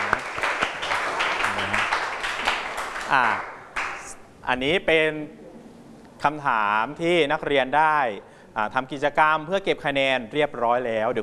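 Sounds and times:
classroom applause: 0:00.0 - 0:04.2
speech: 0:03.1 - 0:03.5, 0:04.5 - 0:05.4, 0:06.2 - 0:11.2.

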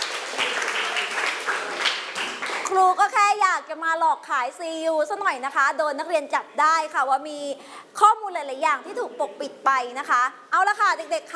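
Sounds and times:
students in a classroom clapping for two student groups: 0:00.0 - 0:02.7
speech: 0:02.8 - 0:11.3.

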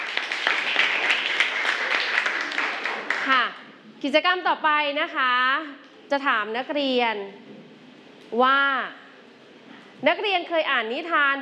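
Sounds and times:
audience applause: 0:00.0 - 0:03.3
speech: 0:03.3 - 0:07.5, 0:08.3 - 0:09.0, 0:10.0 - 0:11.4.

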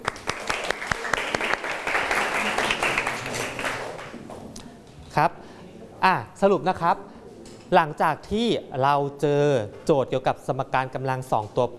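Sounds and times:
classroom applause: 0:00.0 - 0:04.2
speech: 0:05.2 - 0:05.4, 0:06.0 - 0:07.1, 0:07.7 - 0:11.7.

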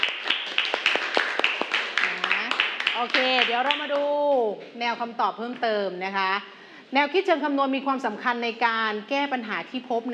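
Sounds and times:
scattered clapping from students in a classroom: 0:00.0 - 0:04.4
speech: 0:03.0 - 0:10.1.

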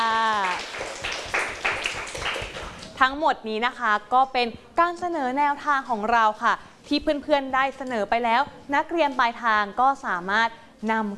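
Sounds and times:
classroom applause from students: 0:00.0 - 0:03.0
speech: 0:03.0 - 0:11.1.

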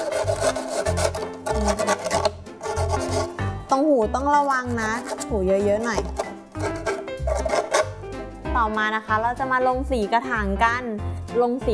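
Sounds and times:
sandpaper rubbing cut plastic edges: 0:00.0 - 0:03.4, 0:05.9 - 0:07.9
speech: 0:01.5 - 0:02.3, 0:03.7 - 0:06.2, 0:08.6 - 0:11.7.

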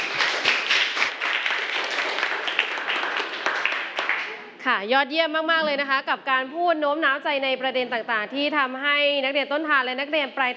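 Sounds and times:
group applauding: 0:00.0 - 0:04.6
speech: 0:04.7 - 0:10.5.

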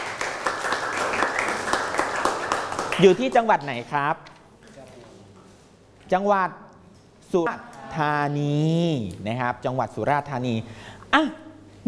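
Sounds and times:
class of students clapping for classmates: 0:00.0 - 0:03.8
speech: 0:03.0 - 0:04.3, 0:06.1 - 0:06.6, 0:07.3 - 0:11.8.

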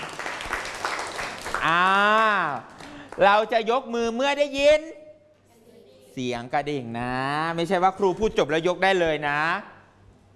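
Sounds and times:
classroom children clapping: 0:00.0 - 0:03.4
speech: 0:03.2 - 0:05.0, 0:06.2 - 0:09.7.

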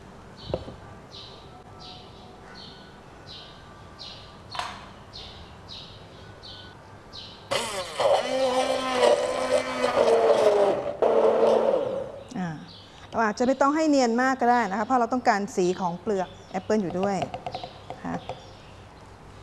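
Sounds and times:
electric blender blending apples with apple juice: 0:07.5 - 0:12.0
speech: 0:13.3 - 0:17.4.

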